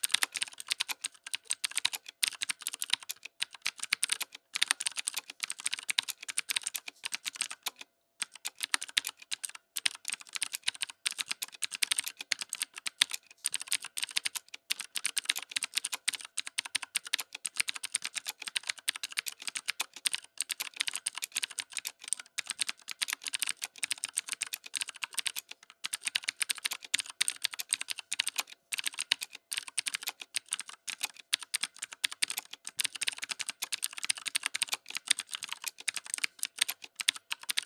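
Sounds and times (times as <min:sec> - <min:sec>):
tenkey tactile keyboard clicks: 0:00.0 - 0:37.6.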